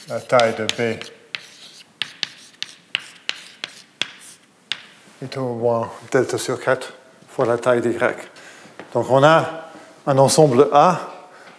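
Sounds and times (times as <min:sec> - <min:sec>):
speech: 0:00.0 - 0:01.2, 0:05.2 - 0:11.1
writing on a board during a mathematics lecture: 0:00.0 - 0:04.9.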